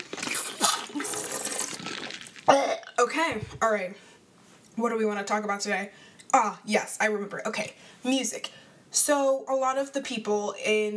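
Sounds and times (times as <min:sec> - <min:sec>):
person sipping coffee with wet slurps: 0:00.0 - 0:02.9
speech: 0:03.0 - 0:04.1, 0:04.8 - 0:10.9.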